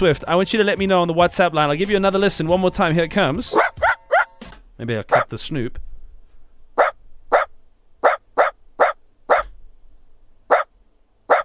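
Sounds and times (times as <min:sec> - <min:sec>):
speech: 0:00.0 - 0:03.8, 0:04.8 - 0:05.9
Dachshund barking: 0:03.5 - 0:04.3, 0:06.8 - 0:09.5, 0:10.5 - 0:10.7, 0:11.3 - 0:11.4.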